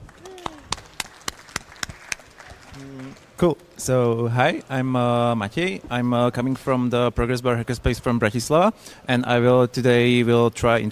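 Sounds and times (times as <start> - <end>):
sharp claps: 0.0 - 3.2
speech: 2.8 - 10.9.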